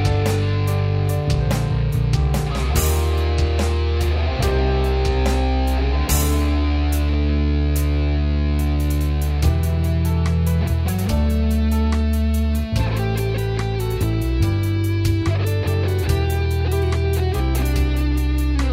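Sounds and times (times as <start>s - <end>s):
song: 0.0s - 18.7s.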